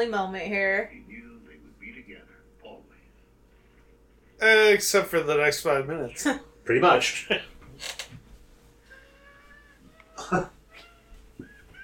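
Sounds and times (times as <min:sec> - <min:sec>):
speech: 0:00.0 - 0:02.3, 0:04.4 - 0:08.1, 0:10.2 - 0:10.6
cat meowing: 0:08.9 - 0:11.8.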